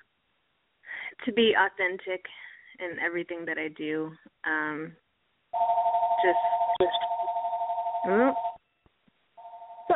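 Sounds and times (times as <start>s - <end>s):
speech: 1.2s - 5.0s, 5.6s - 7.0s, 8.0s - 8.5s
house phone ringing with electronic trill: 5.6s - 8.6s, 9.4s - 9.9s.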